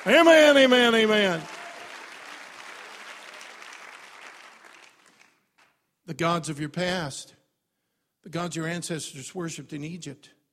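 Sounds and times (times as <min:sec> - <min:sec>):
speech: 0:00.0 - 0:01.6, 0:06.1 - 0:07.4, 0:08.2 - 0:10.4
audience clapping hands: 0:00.0 - 0:05.9.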